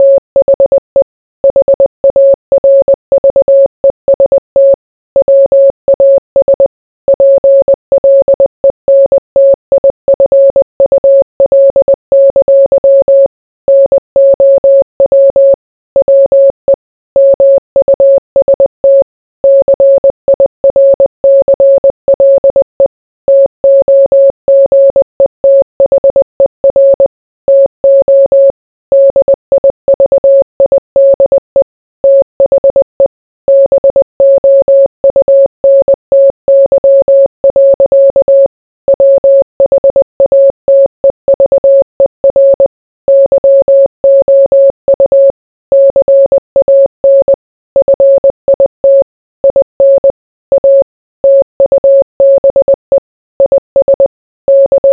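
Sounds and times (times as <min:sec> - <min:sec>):
morse code beeps: 0:00.0 - 0:54.9.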